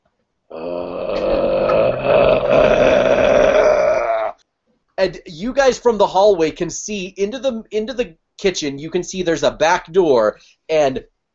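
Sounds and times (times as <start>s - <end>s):
person imitating a zombie moan: 0.5s - 4.4s
speech: 5.0s - 11.3s.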